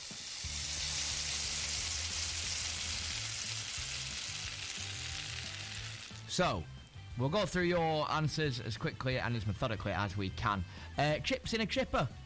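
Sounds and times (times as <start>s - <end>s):
meat searing on a barbecue: 0.0s - 6.5s
speech: 6.4s - 12.2s.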